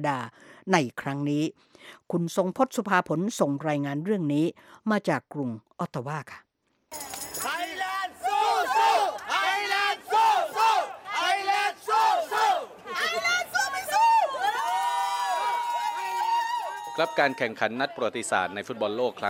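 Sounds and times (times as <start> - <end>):
speech: 0.0 - 7.2, 17.0 - 19.2
football fans cheering loudly: 7.5 - 18.0.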